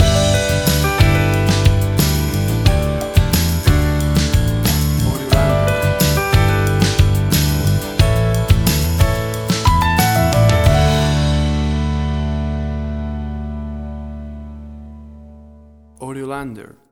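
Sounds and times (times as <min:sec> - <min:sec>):
acoustic guitar: 0:00.0 - 0:16.0.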